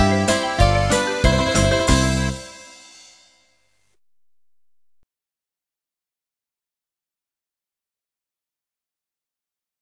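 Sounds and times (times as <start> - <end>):
hello song: 0.0 - 3.5.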